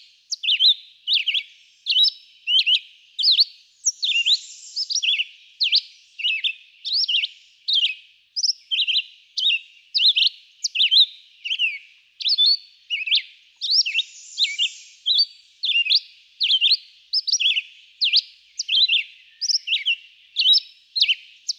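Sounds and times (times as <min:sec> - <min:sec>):
red-eyed vireo singing slurred whistles: 0:00.3 - 0:21.5
faint high hiss: 0:01.4 - 0:07.7, 0:11.3 - 0:18.6.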